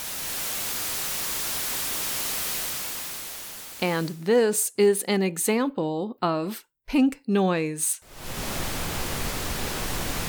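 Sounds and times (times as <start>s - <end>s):
white noise: 0.0s - 4.4s, 8.0s - 10.2s
speech: 3.8s - 8.3s.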